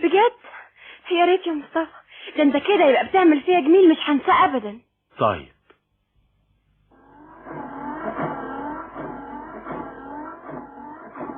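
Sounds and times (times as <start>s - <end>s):
speech: 0.2s - 5.6s
car engine revving: 6.9s - 11.3s.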